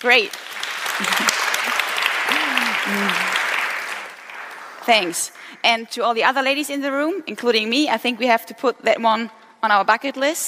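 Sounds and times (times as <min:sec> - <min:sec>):
speech: 0:00.0 - 0:01.3, 0:04.9 - 0:10.4
crowd applauding: 0:00.0 - 0:05.6
faint voices and cheers: 0:02.3 - 0:03.4.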